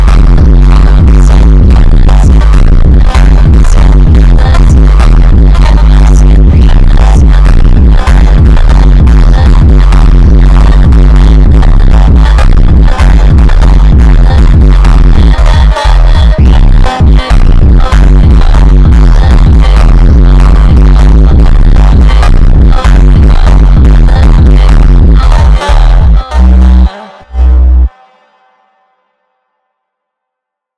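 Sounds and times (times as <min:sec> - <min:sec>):
slowed montagem music with superbass and reverb: 0:00.0 - 0:28.4.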